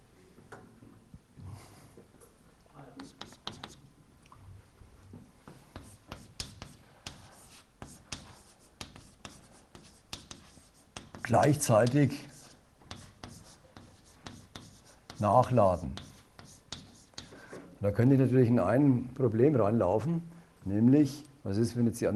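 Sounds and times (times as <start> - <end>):
pen-like writing strokes during a lecture: 3.0 - 3.8, 5.5 - 17.4
speech: 11.3 - 12.3, 15.2 - 16.1, 17.8 - 22.1.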